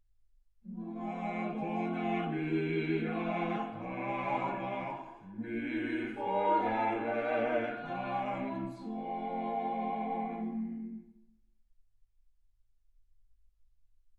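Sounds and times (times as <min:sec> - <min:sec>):
quartet playing: 0:00.7 - 0:10.6.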